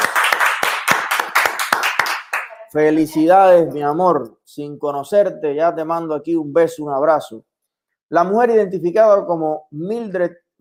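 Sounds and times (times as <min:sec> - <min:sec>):
applause: 0:00.0 - 0:02.7
speech: 0:02.7 - 0:07.5, 0:08.1 - 0:10.5.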